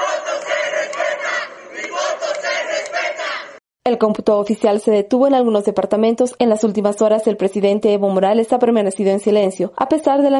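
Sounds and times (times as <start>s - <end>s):
crowd of protesters chanting a slogan: 0.0s - 3.6s
speech: 4.0s - 10.3s.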